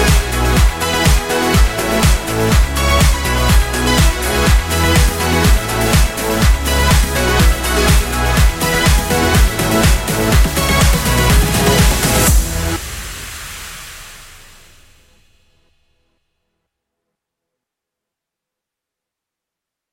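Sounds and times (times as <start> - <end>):
simple cheerful dance pop melody: 0.0 - 12.9.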